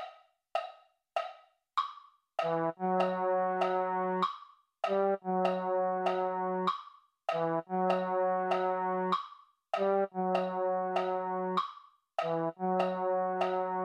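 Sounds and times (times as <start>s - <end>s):
MIDI baritone sound: 2.4s - 4.3s, 4.9s - 6.7s, 7.3s - 9.2s, 9.8s - 11.6s, 12.2s - 13.8s.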